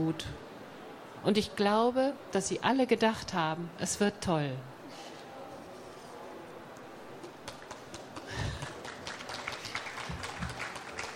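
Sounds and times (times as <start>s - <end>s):
speech: 0.0s - 0.5s, 1.2s - 5.1s
audience applause after a reading of a Dorothy Parker story: 7.2s - 11.1s.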